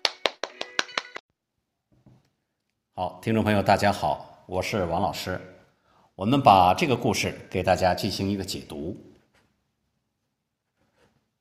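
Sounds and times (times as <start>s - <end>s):
applause: 0.0s - 1.2s
speech: 3.0s - 5.6s, 6.2s - 9.1s.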